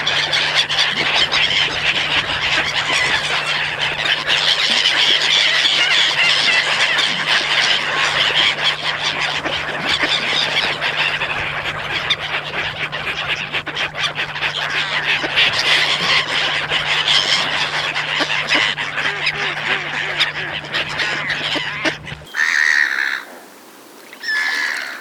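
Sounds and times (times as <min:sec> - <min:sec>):
Black-headed gull giving harsh rasping drawn-out cries: 0:00.0 - 0:23.4, 0:24.0 - 0:24.9.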